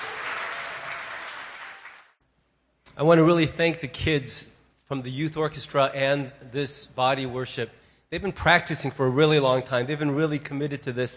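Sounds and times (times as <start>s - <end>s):
audience applause: 0.0s - 2.2s
speech: 3.0s - 11.1s.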